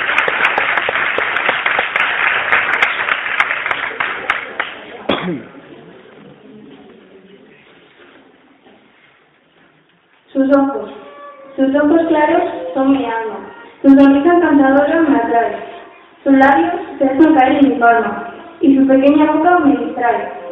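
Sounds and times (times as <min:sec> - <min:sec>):
crowd applauding: 0:00.0 - 0:05.1
faint murmuring: 0:03.6 - 0:20.5
speech: 0:10.4 - 0:10.9, 0:11.6 - 0:13.2, 0:13.8 - 0:15.6, 0:16.2 - 0:20.4.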